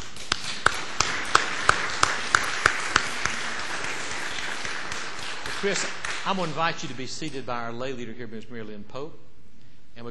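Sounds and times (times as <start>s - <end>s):
audience applause: 0.0s - 7.0s
speech: 5.6s - 9.3s.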